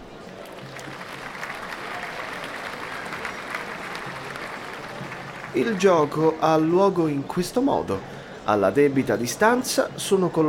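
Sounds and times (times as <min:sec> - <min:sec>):
crowd clapping: 0:00.0 - 0:06.7
speech: 0:05.5 - 0:10.4.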